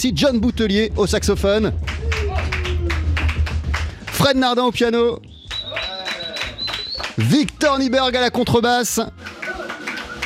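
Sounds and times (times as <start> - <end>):
speech: 0.0 - 2.1, 4.2 - 5.3, 7.2 - 9.2
audience applause: 1.9 - 4.2, 5.5 - 7.4, 9.1 - 10.2.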